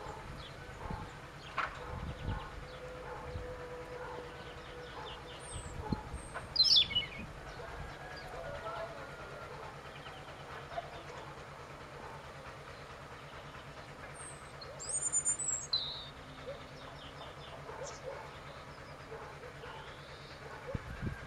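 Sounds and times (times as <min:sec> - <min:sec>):
European robin singing: 0:00.0 - 0:11.4, 0:12.0 - 0:20.8.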